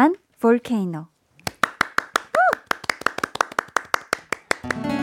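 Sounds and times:
speech: 0.0s - 1.1s
audience applause: 1.5s - 4.9s.

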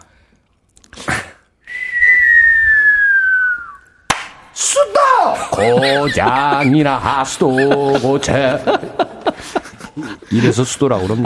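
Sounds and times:
voice imitating fireworks whistle: 1.7s - 4.1s
laughter: 5.0s - 11.2s
speech: 5.6s - 11.2s.

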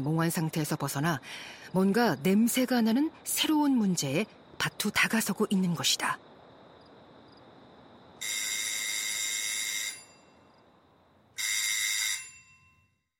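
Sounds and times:
speech: 0.0s - 6.3s
hiss: 0.0s - 11.4s
doorbell ringing: 8.2s - 10.4s, 11.4s - 13.1s.

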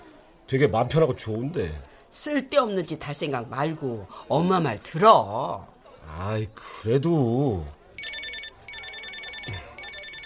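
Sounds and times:
speech: 0.5s - 7.8s
telephone ringing: 8.0s - 10.2s.

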